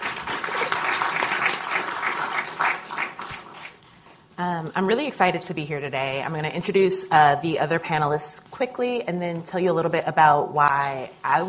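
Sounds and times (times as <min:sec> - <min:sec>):
audience applause: 0:00.0 - 0:03.8
speech: 0:04.4 - 0:11.4.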